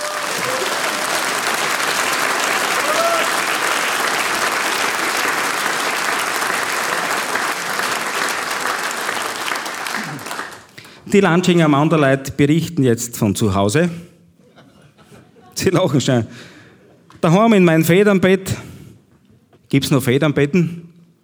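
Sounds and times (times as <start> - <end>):
audience applause: 0.0 - 11.0
speech: 11.1 - 14.1, 15.6 - 16.5, 17.2 - 18.7, 19.7 - 20.9.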